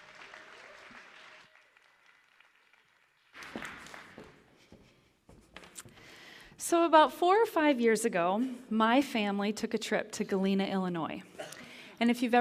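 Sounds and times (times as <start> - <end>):
church audience applause welcoming a speaker to the stage: 0.0 - 4.5
speech: 6.7 - 11.3, 12.0 - 12.3.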